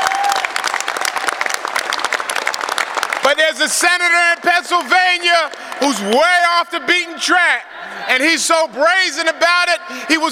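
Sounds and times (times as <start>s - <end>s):
crowd applause: 0.0s - 6.7s
speech: 3.4s - 10.3s.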